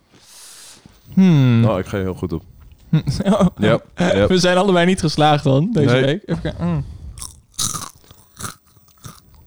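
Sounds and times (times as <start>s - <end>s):
speech: 1.2s - 6.9s
laughter: 2.9s - 4.4s
crunchy seaweed snack being chewed: 7.2s - 9.4s.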